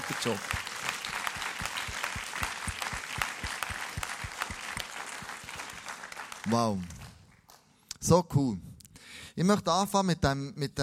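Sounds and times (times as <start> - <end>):
loud audience applause: 0.0 - 7.6
speech: 0.1 - 0.6, 6.5 - 7.0, 8.0 - 8.7, 9.4 - 10.8.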